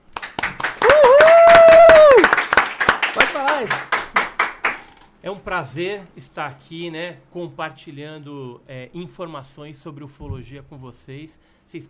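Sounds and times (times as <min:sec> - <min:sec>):
audience applause: 0:00.0 - 0:05.0
person whooping: 0:00.8 - 0:02.4
speech: 0:03.6 - 0:03.9, 0:05.2 - 0:11.8.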